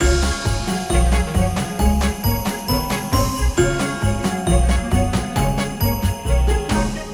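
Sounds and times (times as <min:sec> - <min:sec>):
big win tally music loop: 0:00.0 - 0:07.1.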